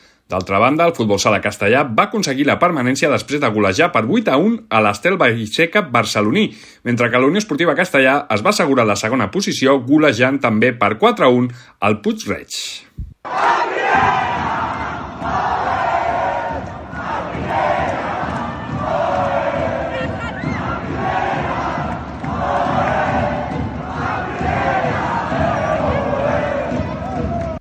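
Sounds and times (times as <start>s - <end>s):
speech: 0.3s - 13.7s
large crowd chanting: 13.2s - 27.5s.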